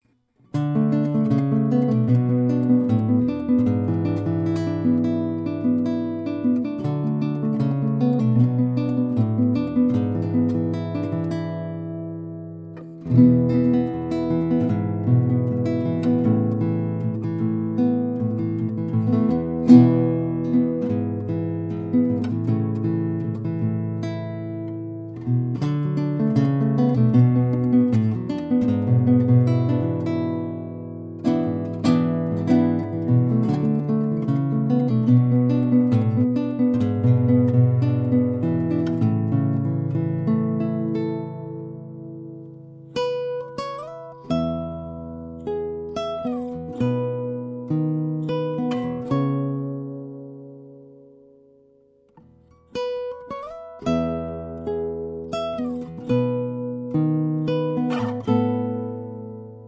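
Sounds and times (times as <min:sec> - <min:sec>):
guitar: 0:00.0 - 0:59.6.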